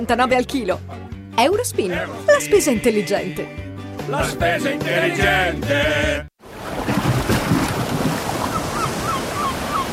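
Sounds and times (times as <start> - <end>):
speech: 0.0 - 6.3
sea waves: 6.4 - 9.9.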